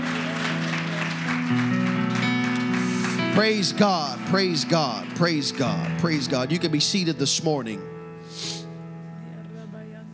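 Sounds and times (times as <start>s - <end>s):
audience clapping hands in praise: 0.0s - 7.6s
speech: 3.4s - 8.5s.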